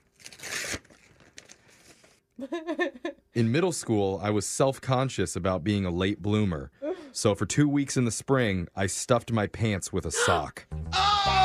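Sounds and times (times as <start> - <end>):
paper crinkling: 0.0 - 2.2
paper envelope tearing open: 0.0 - 2.2
speech: 2.4 - 11.0.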